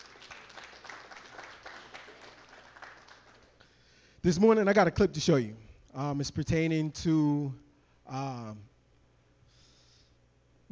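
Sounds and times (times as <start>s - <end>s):
audience applause: 0.0s - 3.6s
speech: 4.2s - 8.7s.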